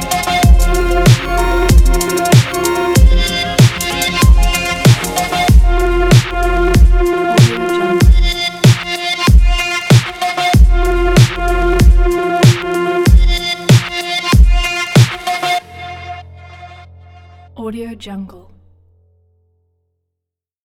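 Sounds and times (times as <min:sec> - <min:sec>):
trance music: 0:00.0 - 0:16.2.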